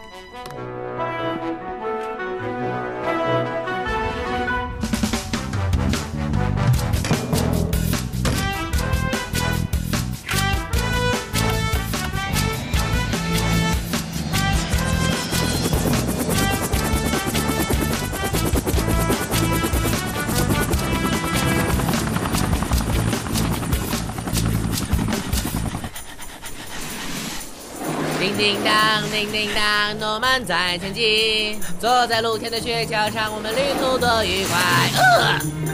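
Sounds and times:
music: 0.0 - 26.6, 27.7 - 35.7
helicopter flying: 11.1 - 30.2, 32.0 - 35.7
speech: 28.4 - 35.7.

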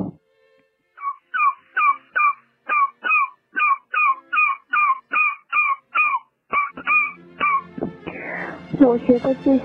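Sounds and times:
person imitating duck quacking: 1.0 - 8.6
speech: 8.8 - 9.6.

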